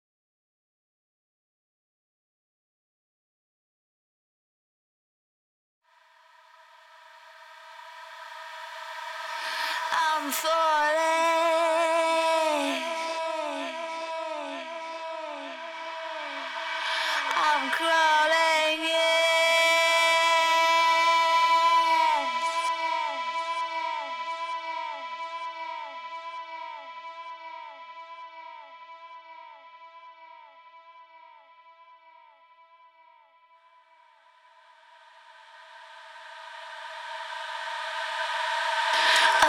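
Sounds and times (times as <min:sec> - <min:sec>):
a cappella singing: 0:08.3 - 0:29.5, 0:36.3 - 0:39.4.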